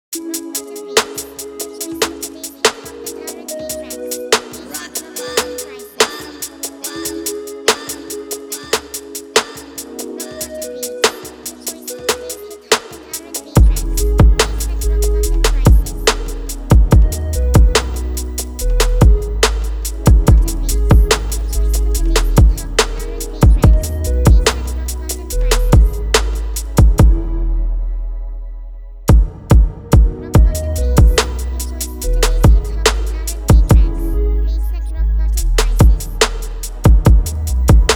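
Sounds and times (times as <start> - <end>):
music beat: 0.1 - 27.4, 29.1 - 37.9.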